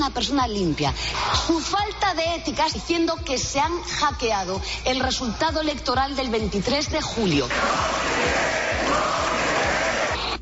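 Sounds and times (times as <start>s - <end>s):
speech: 0.0s - 8.6s
shouting from the parliament benches: 7.5s - 10.4s.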